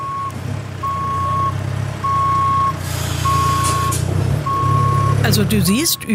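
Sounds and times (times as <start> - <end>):
heavy truck engine rumble: 0.0 - 6.1
reversing alarm beeping: 0.0 - 6.1
air brakes hissing: 2.7 - 4.1
speech: 5.2 - 6.1.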